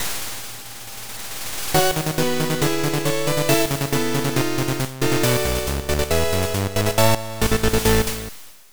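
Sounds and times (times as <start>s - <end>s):
scene clear jingle: 1.8s - 8.3s.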